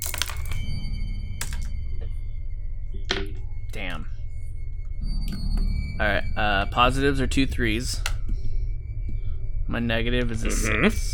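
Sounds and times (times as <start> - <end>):
dice clattering: 0.0 - 0.6, 1.4 - 1.7
low hum: 0.0 - 11.1
speech: 6.0 - 8.1, 9.7 - 11.1.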